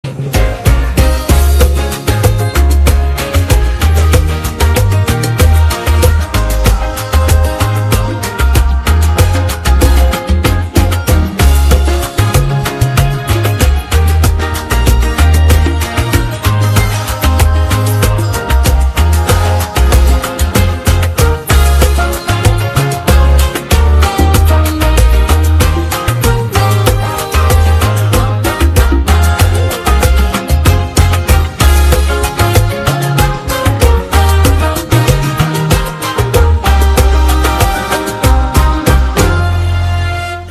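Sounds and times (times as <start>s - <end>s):
instrumental music: 0.0s - 40.4s.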